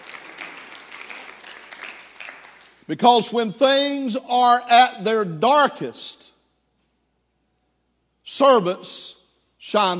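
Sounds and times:
audience applause: 0:00.0 - 0:02.8
speech: 0:02.9 - 0:06.3, 0:08.3 - 0:09.9.

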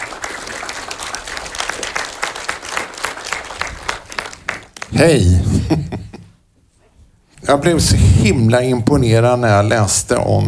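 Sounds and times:
crowd applauding: 0:00.0 - 0:05.0
speech: 0:04.9 - 0:06.0, 0:07.5 - 0:10.4
laughter: 0:05.0 - 0:06.4.

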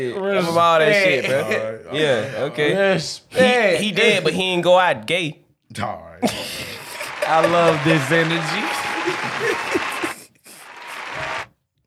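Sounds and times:
speech: 0:00.0 - 0:06.7, 0:07.3 - 0:09.8
laughter: 0:00.9 - 0:02.8, 0:03.4 - 0:04.6, 0:06.2 - 0:11.5
applause sound effect from soundboard button: 0:06.3 - 0:11.5.

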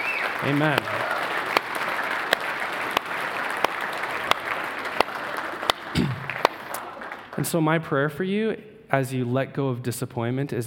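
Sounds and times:
audience clapping hands: 0:00.0 - 0:07.7
speech: 0:00.4 - 0:01.0, 0:07.4 - 0:10.6.

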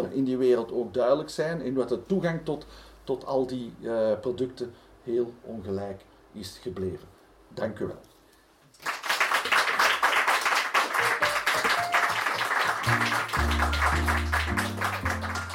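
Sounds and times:
speech: 0:00.0 - 0:08.1
applause: 0:08.8 - 0:15.5.

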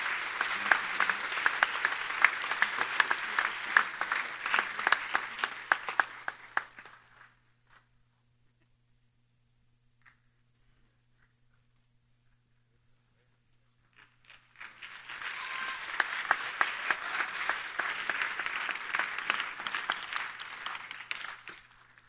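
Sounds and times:
church audience clapping to congratulate a graduate: 0:00.0 - 0:07.3, 0:13.9 - 0:22.0.

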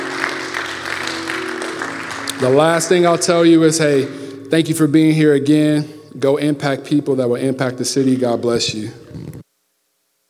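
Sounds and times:
audience applause: 0:00.0 - 0:03.5
speech: 0:02.4 - 0:09.3.

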